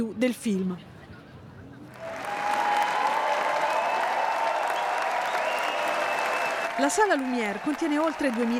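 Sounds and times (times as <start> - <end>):
speech: 0.0 - 0.9, 6.8 - 8.5
audience applause after film screening: 1.9 - 8.5.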